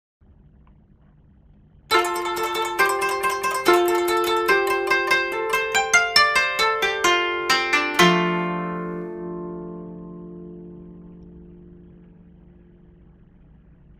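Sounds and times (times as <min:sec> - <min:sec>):
koto: 0:01.9 - 0:13.0.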